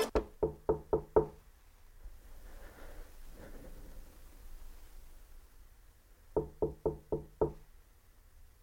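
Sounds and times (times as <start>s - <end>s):
knocking on a door: 0.1s - 1.4s, 6.3s - 7.6s.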